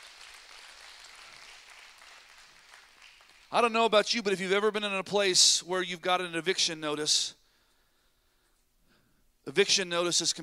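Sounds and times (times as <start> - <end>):
audience applause: 0.0 - 3.5
speech: 3.5 - 7.4, 9.5 - 10.4.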